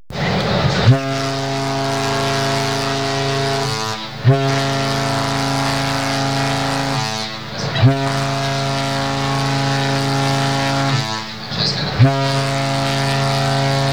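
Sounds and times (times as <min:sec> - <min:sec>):
8-bit foghorn: 0:00.1 - 0:13.9.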